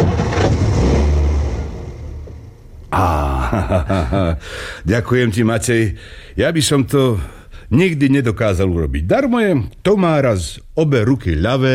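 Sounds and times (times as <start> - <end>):
car engine starting: 0.0 - 2.9
laughter: 3.0 - 4.9
speech: 3.6 - 11.7.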